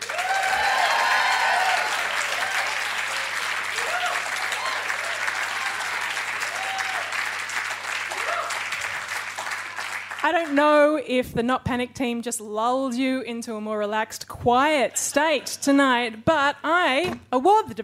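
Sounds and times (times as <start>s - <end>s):
science comedy debate audience applause: 0.0s - 10.5s
speech: 10.3s - 17.8s.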